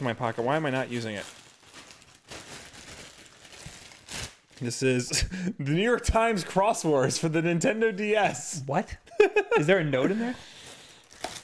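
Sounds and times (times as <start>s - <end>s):
speech: 0.0s - 1.4s, 4.6s - 10.6s
mailed package torn open by hand: 1.1s - 4.6s, 10.6s - 11.4s.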